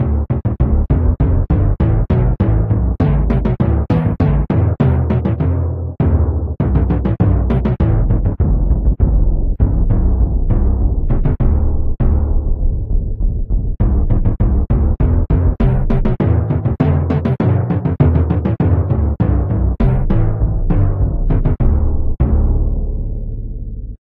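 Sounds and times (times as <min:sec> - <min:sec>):
drum: 0:00.0 - 0:22.9.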